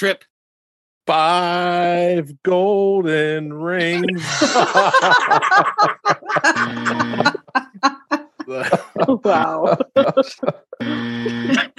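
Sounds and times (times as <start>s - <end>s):
speech: 0.0s - 0.3s, 1.0s - 11.7s
laughter: 1.2s - 2.2s, 3.6s - 11.7s
game buzzer being pressed: 3.8s - 7.5s, 10.8s - 11.7s.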